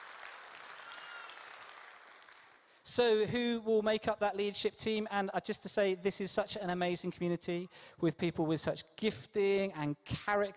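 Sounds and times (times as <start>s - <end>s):
audience applauding: 0.0s - 2.8s
speech: 2.8s - 10.5s.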